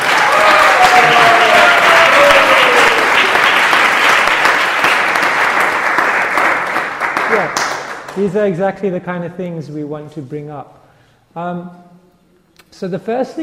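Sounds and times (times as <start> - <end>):
audience applause: 0.0 - 8.2
speech: 8.2 - 12.0, 12.7 - 13.4.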